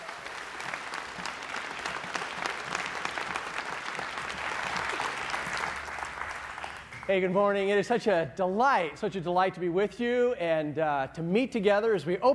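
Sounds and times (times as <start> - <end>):
audience applause: 0.0 - 7.1
speech: 7.1 - 12.3.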